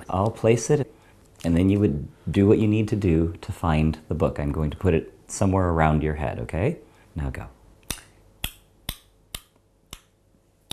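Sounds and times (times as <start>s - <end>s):
speech: 0.1s - 7.6s
mouth clicks for echolocation: 7.8s - 10.0s.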